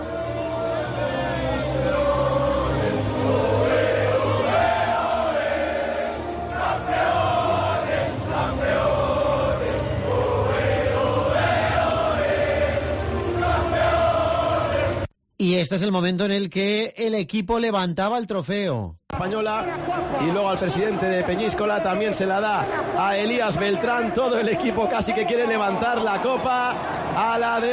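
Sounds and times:
shouting and cheering: 0.0s - 15.1s, 19.2s - 27.7s
team chanting: 0.0s - 15.1s
speech: 15.4s - 27.7s.

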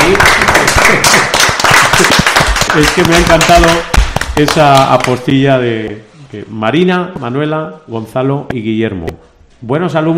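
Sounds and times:
hand clapping: 0.0s - 5.3s
speech: 2.8s - 10.1s.

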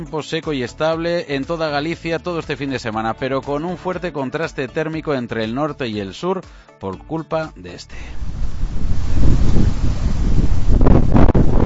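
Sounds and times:
speech: 0.0s - 8.2s
strong northeast nordés wind gusting over 90 km/h in Santiago de Compostela: 8.0s - 11.6s
trees rustling along the Alameda: 8.0s - 11.6s.

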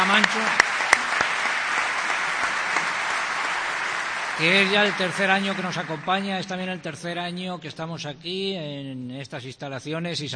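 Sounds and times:
audience applause for a music group: 0.0s - 6.7s
speech: 0.1s - 0.7s, 4.4s - 10.3s.

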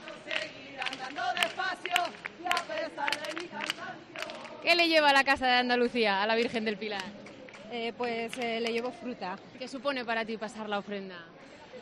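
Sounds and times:
palmas rhythmic hand clapping from a group in procession: 0.0s - 5.0s, 6.4s - 9.0s
crowd voices: 0.0s - 11.7s
speech: 1.1s - 11.6s.

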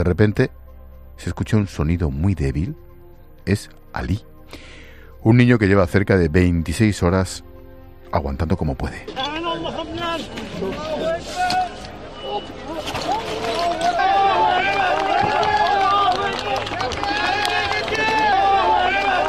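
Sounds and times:
speech: 0.0s - 0.6s, 1.2s - 2.8s, 3.4s - 7.5s, 8.1s - 9.3s
rescue firefighters shouting and cheering: 9.1s - 19.2s
crowd of rescue firefighters applauding: 13.1s - 19.2s.

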